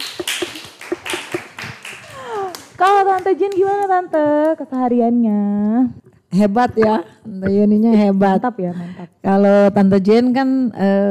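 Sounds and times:
hand clapping: 0:00.0 - 0:05.3
speech: 0:02.8 - 0:11.0.

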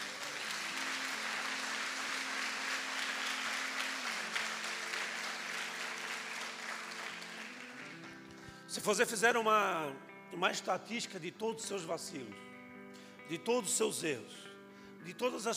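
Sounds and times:
audience clapping: 0:00.0 - 0:08.5
speech: 0:08.7 - 0:12.5, 0:13.3 - 0:15.5.

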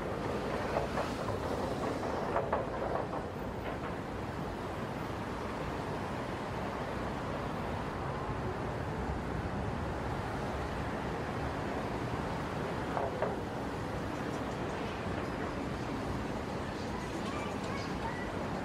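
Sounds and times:
heavy traffic on the Brooklyn Bridge at night: 0:00.0 - 0:18.6
brief clatters and knocks: 0:00.2 - 0:04.3, 0:12.9 - 0:15.7
faint voices: 0:14.7 - 0:18.6.

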